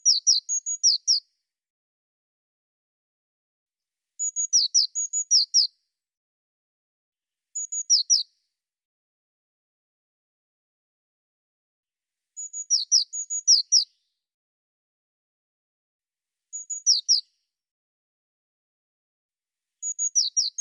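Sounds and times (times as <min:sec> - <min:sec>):
Eurasian blue tit thin high whistled notes: 0:00.0 - 0:01.3, 0:04.2 - 0:05.7, 0:07.6 - 0:08.3, 0:12.4 - 0:14.0, 0:16.5 - 0:17.4, 0:19.8 - 0:20.5.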